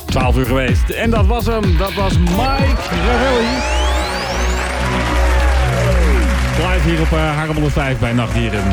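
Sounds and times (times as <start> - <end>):
speech: 0.2 - 3.8, 6.8 - 8.7
studio audience applause: 2.6 - 8.7.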